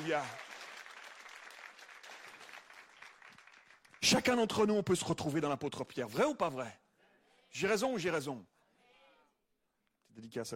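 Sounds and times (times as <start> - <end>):
speech: 0.0 - 0.4, 4.0 - 6.8, 7.5 - 8.5, 10.1 - 10.5
audience applauding: 0.0 - 4.2.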